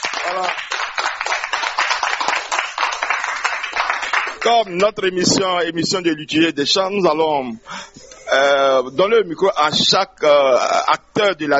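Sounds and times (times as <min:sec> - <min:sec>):
applause for a Catholic choir: 0:00.0 - 0:04.5
speech: 0:00.2 - 0:00.7, 0:04.4 - 0:11.5.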